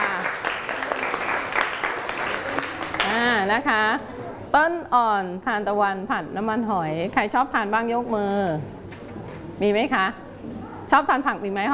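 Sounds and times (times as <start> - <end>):
group of children clapping in a classroom: 0.0 - 3.4
speech: 3.5 - 8.8, 9.6 - 10.2, 10.9 - 11.7.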